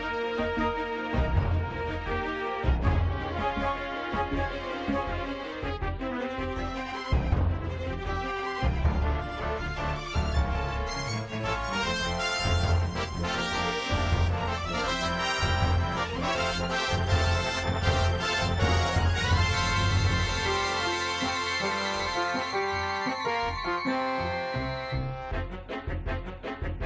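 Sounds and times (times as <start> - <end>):
game theme music: 0.0 - 26.8.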